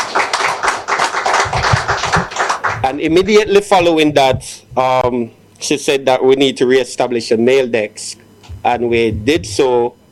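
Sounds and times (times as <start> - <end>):
audience applause for a government minister at a public event: 0.0 - 3.0
speech: 3.0 - 10.0.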